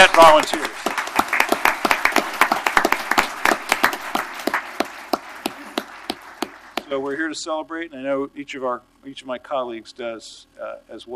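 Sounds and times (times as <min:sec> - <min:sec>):
applause in council chamber: 0:00.0 - 0:07.0
speech: 0:00.2 - 0:01.0, 0:06.9 - 0:11.1.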